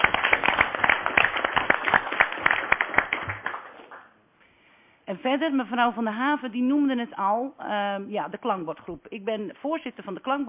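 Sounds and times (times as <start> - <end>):
audience applause: 0.0 - 4.0
speech: 5.2 - 10.4.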